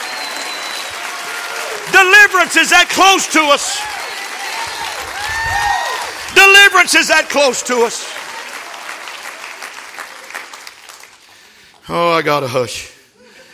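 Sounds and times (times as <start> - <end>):
audience clapping: 0.0 - 11.8
speech: 2.0 - 4.1, 6.4 - 8.2, 11.9 - 12.9.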